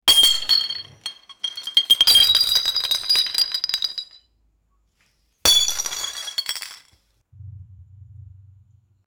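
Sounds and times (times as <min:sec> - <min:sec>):
many bottles breaking: 0:00.1 - 0:04.2, 0:05.5 - 0:07.0.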